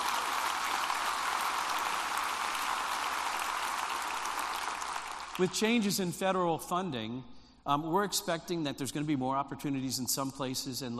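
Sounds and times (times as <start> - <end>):
large crowd applauding: 0.0 - 5.6
speech: 5.4 - 10.9.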